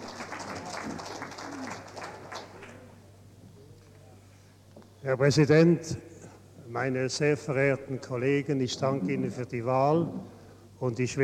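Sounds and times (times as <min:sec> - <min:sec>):
applause from an assembly: 0:00.0 - 0:02.9
speech: 0:05.0 - 0:06.1, 0:06.7 - 0:11.2.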